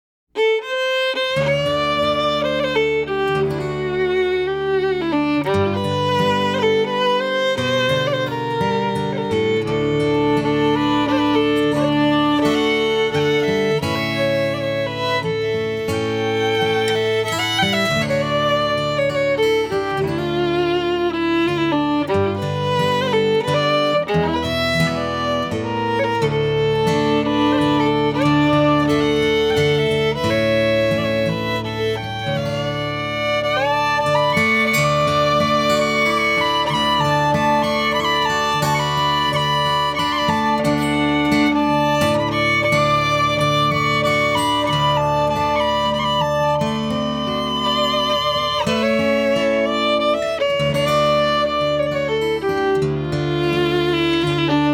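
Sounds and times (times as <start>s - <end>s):
waltz music: 0.4s - 54.7s.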